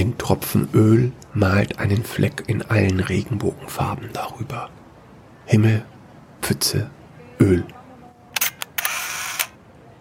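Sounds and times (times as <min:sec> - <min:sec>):
speech: 0:00.0 - 0:04.8, 0:05.5 - 0:07.8
camera shutter clicking and whirring: 0:08.4 - 0:09.6.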